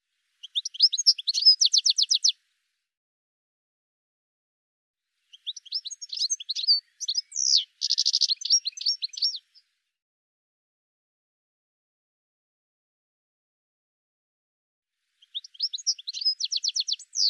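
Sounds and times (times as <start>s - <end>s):
high sharp bird chirps: 0.4s - 2.3s, 5.3s - 9.5s, 15.2s - 17.2s.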